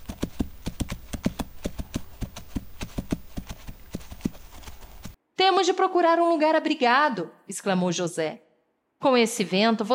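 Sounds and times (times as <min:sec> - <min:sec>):
donkey hooves clip-clopping on a rocky trail: 0:00.0 - 0:05.2
speech: 0:05.6 - 0:08.4, 0:09.0 - 0:09.9.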